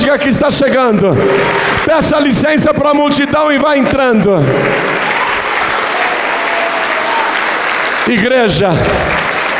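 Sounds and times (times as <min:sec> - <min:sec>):
speech: 0:00.0 - 0:04.9, 0:08.1 - 0:09.2
audience applause: 0:04.4 - 0:09.5.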